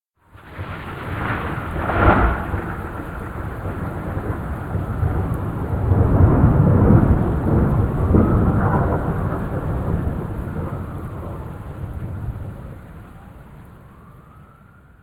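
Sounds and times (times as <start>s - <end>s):
thunder: 0.3s - 14.8s.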